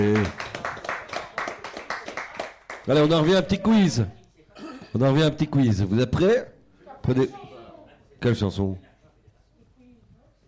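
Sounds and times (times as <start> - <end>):
audience clapping along at a concert: 0.0 - 3.4
speech: 2.9 - 4.2, 4.9 - 6.5, 7.1 - 7.4, 8.2 - 8.9.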